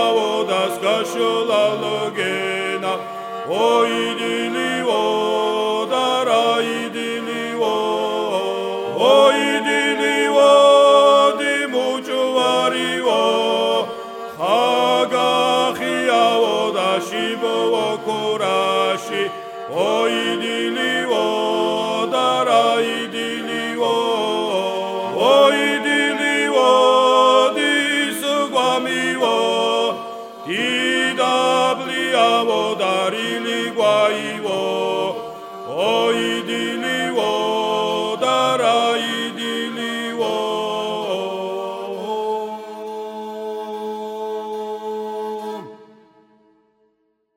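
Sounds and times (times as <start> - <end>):
person singing second voice of a Svan song: 0.0 - 46.2.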